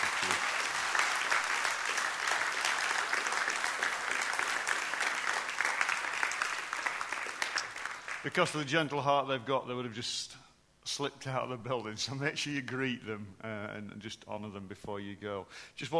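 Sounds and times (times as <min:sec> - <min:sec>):
audience applause: 0:00.0 - 0:08.3
speech: 0:08.2 - 0:15.9.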